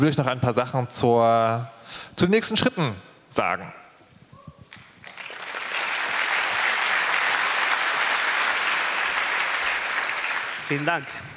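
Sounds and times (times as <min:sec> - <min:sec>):
speech: 0:00.0 - 0:03.8, 0:10.7 - 0:11.3
audience applause: 0:05.0 - 0:11.1.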